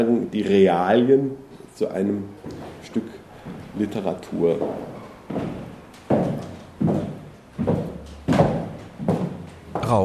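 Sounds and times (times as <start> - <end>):
speech: 0.0 - 3.2, 3.8 - 6.2
footsteps on a wooden staircase: 2.4 - 9.9.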